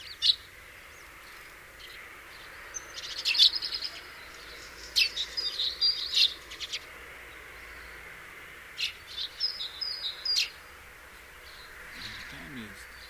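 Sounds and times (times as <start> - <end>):
Passer domesticus house sparrow chirping: 0.0 - 8.1, 8.7 - 13.0.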